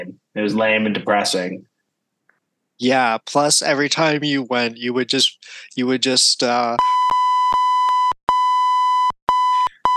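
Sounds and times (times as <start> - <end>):
speech: 0.0 - 1.7, 2.8 - 7.6
electronic beeps: 6.8 - 9.9.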